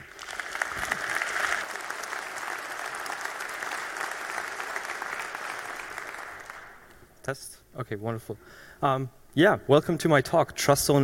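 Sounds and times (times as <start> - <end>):
audience applause: 0.0 - 6.9
speech: 7.2 - 11.0.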